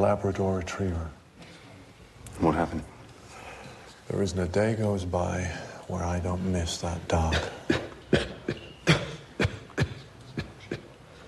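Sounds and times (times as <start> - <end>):
speech: 0.0 - 1.2, 2.4 - 2.9, 4.1 - 7.8
harsh raspy coughs: 7.3 - 10.9.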